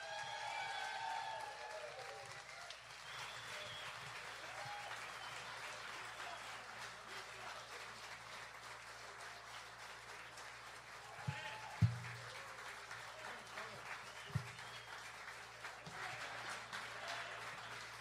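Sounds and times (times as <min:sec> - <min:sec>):
whoops and shouts: 0:00.0 - 0:02.8, 0:03.4 - 0:05.4, 0:11.1 - 0:11.8
crowd clapping: 0:00.0 - 0:17.9.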